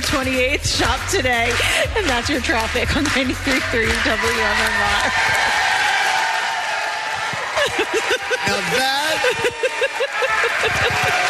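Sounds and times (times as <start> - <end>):
audience slow clap: 0.0 - 11.2
speech: 0.1 - 5.7, 7.7 - 11.2
laughter: 3.2 - 6.0, 7.3 - 11.2.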